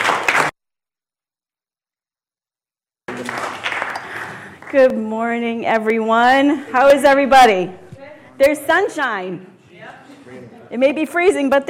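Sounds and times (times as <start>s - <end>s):
audience clapping hands: 0.0s - 0.5s, 3.1s - 5.0s
speech: 4.7s - 7.8s, 8.4s - 11.6s.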